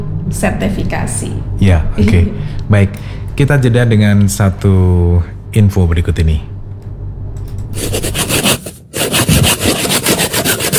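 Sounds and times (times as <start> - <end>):
speech: 0.3 - 6.5
bamboo being sawn by hand: 7.8 - 10.7.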